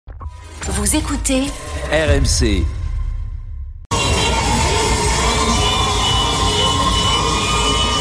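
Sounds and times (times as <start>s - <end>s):
low rumble: 0.2s - 4.0s
speech: 0.8s - 2.8s
crowd shouting with joy in Tehran: 3.9s - 7.9s.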